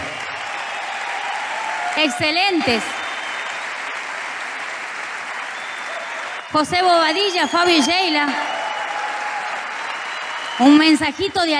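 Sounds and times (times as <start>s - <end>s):
audience applause: 0.0s - 11.5s
speech: 2.0s - 3.0s, 6.5s - 8.6s, 10.6s - 11.5s.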